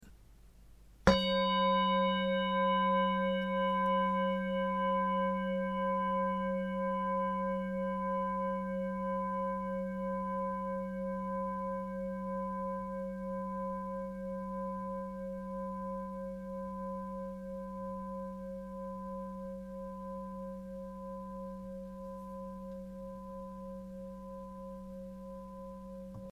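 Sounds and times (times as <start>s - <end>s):
singing bowl: 1.1s - 26.3s.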